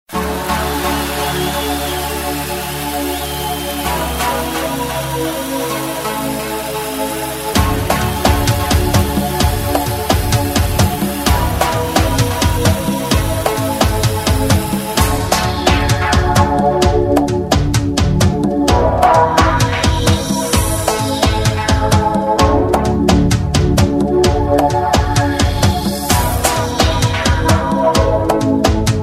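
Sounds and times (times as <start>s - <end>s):
funk music: 0.1s - 29.0s.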